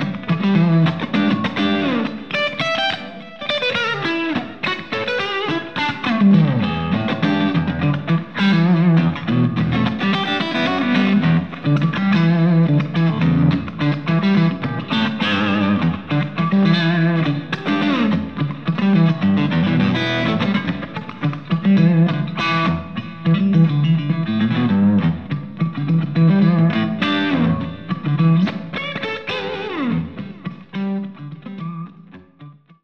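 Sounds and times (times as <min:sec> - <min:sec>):
guitar through overdrive pedal at half gain: 0:00.0 - 0:32.8.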